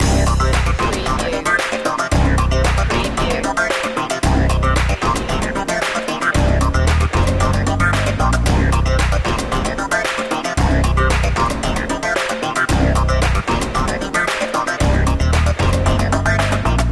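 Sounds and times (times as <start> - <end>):
rhythmic soul music loop: 0.0 - 16.8.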